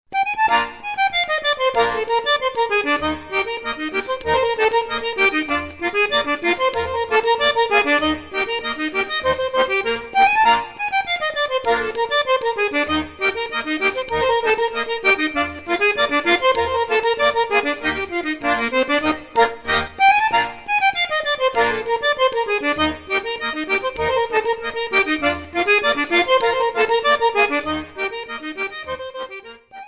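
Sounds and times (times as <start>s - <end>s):
schottische folk dance music: 0.2s - 29.8s.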